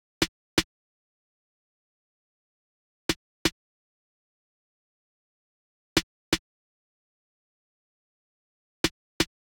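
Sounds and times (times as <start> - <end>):
percussion: 5.9 - 6.5, 8.8 - 9.5.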